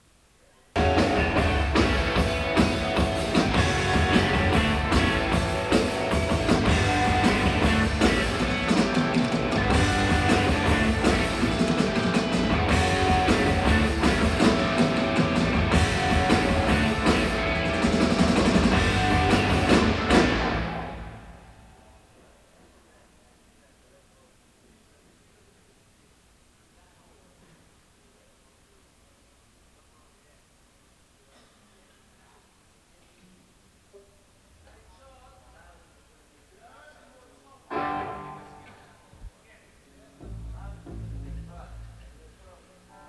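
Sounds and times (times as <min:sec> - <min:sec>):
instruments tuning at a soundcheck: 0:00.8 - 0:22.0.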